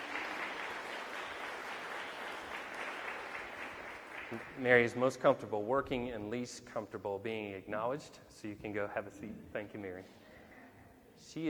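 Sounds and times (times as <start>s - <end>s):
audience applause: 0.0s - 4.6s
speech: 4.3s - 10.2s, 11.3s - 11.4s.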